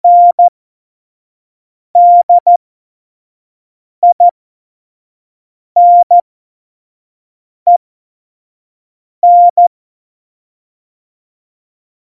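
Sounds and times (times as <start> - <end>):
CW Morse code at tempo 70: 0.1 - 0.5, 2.0 - 2.6, 4.0 - 4.3, 5.8 - 6.2, 9.2 - 9.7.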